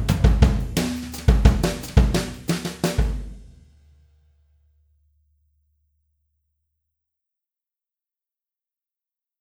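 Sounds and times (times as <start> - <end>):
jazz brushes groove: 0.0 - 3.6.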